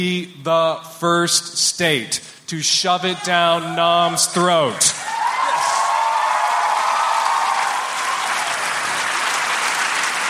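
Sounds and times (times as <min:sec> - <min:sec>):
speech: 0:00.0 - 0:05.1
audience applause: 0:05.0 - 0:10.2.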